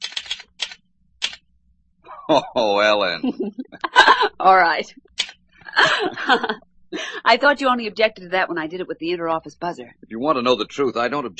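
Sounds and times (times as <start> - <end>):
typing on a typewriter: 0.0 - 1.4
laughter: 2.1 - 4.9, 5.7 - 11.3
speech: 2.3 - 5.1, 5.8 - 11.3.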